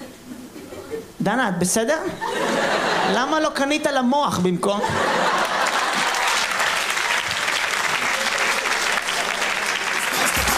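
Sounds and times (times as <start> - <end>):
speech: 1.2 - 5.4
laughter: 2.1 - 3.4, 4.8 - 6.9
audience applause: 5.2 - 10.5.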